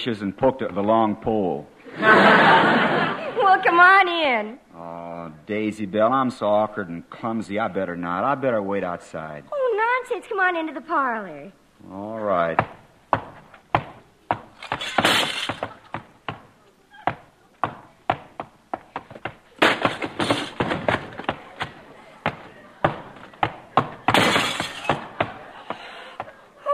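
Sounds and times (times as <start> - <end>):
speech: 0.0 - 4.6, 5.5 - 12.8
laughter: 1.8 - 3.7, 25.0 - 26.6
sofa legs breaking: 13.8 - 16.0, 19.2 - 25.3
front window glass shattering: 14.6 - 15.8, 24.0 - 25.1.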